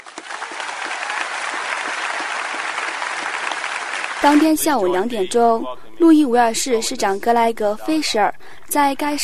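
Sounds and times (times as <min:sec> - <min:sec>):
large crowd applause: 0:00.0 - 0:04.6
speech: 0:04.2 - 0:09.2.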